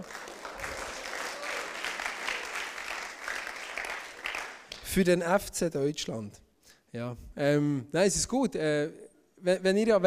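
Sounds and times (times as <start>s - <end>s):
audience clapping: 0.0s - 5.0s
speech: 5.0s - 10.0s.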